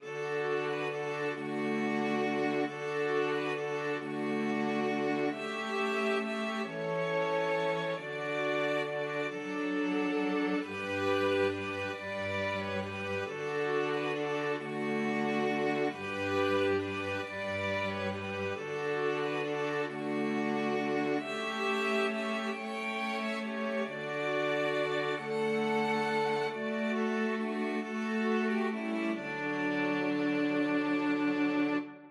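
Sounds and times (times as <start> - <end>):
string quartet: 0.0 - 32.0.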